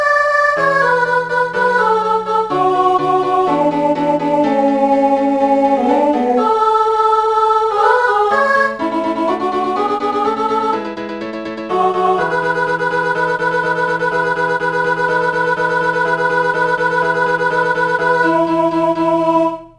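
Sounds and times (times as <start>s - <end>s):
mezzo-soprano singing: 0.0s - 19.7s.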